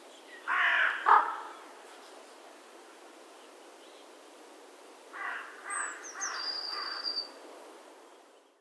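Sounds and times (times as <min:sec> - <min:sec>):
carrion crow Corvus corone giving harsh rasping caws: 0:00.5 - 0:01.6, 0:05.2 - 0:07.0.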